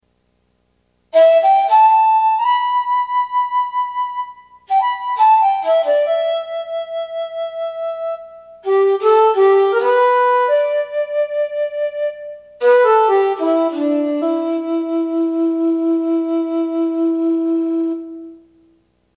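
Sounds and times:
shakuhachi: 0:01.1 - 0:18.6.

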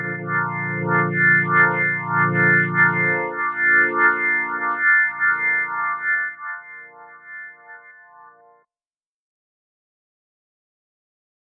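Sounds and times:
Kurzweil PC4 organ: 0:00.0 - 0:08.5.

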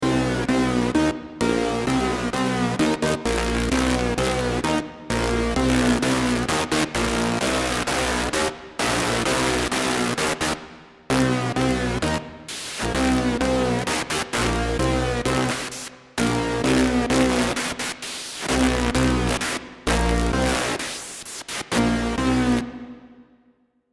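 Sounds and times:
Virus TI2 sawtooth fold synth: 0:00.0 - 0:22.9.

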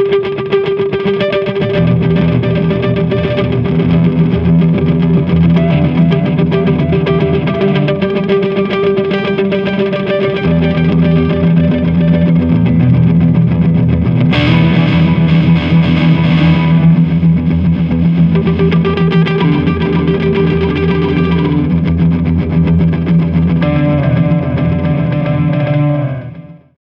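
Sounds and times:
preset pattern: 0:00.2 - 0:26.3.

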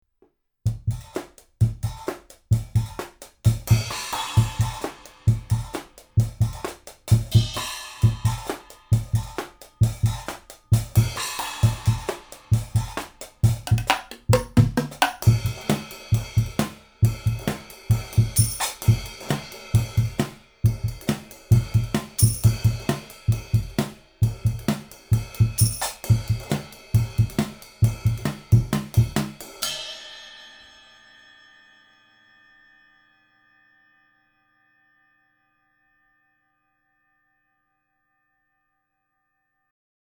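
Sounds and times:
drums: 0:00.7 - 0:31.2.

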